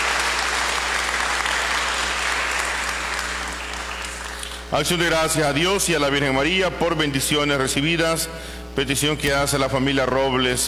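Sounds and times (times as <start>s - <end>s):
applause: 0.0s - 4.7s
speech: 4.7s - 10.6s.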